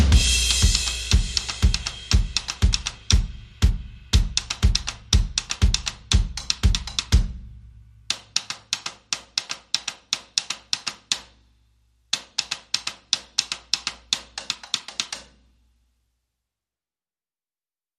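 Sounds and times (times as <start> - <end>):
drums playing: 0.0 - 8.4.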